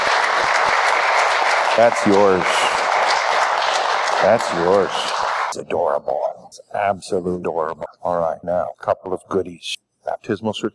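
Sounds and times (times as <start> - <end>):
audience applauding: 0.0 - 5.6
speech: 1.8 - 2.7, 4.2 - 10.7.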